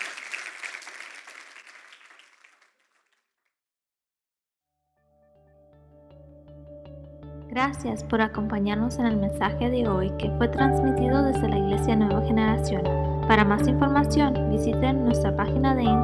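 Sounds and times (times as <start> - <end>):
audience applauding: 0.0 - 2.8
speech: 7.6 - 16.0.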